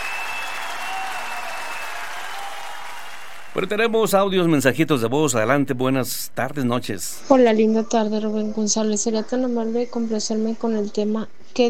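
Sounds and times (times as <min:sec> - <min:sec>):
crowd applause: 0:00.0 - 0:03.9
speech: 0:03.6 - 0:11.6.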